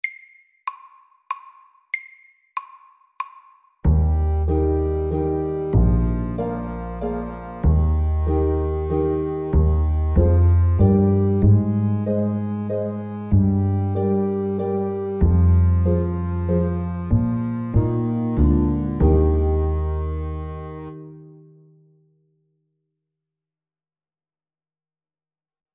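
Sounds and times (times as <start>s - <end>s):
summer waltz music: 3.9s - 21.6s.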